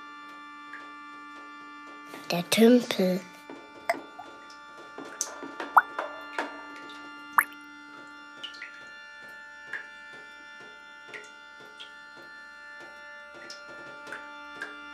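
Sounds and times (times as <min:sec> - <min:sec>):
speech: 0:02.2 - 0:03.3
water drops dripping: 0:03.9 - 0:04.5, 0:06.8 - 0:07.6, 0:08.4 - 0:08.9.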